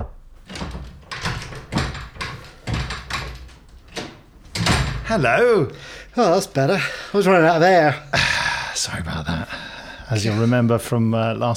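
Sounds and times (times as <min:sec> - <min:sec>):
small cupboard door being opened with thumps and rattles: 0:00.0 - 0:05.2
speech: 0:05.1 - 0:09.5, 0:10.1 - 0:11.5.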